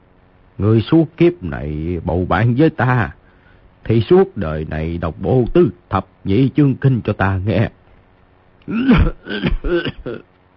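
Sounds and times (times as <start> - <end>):
speech: 0.6 - 3.2, 3.8 - 7.8, 8.7 - 10.3
man coughing violently: 8.7 - 10.3.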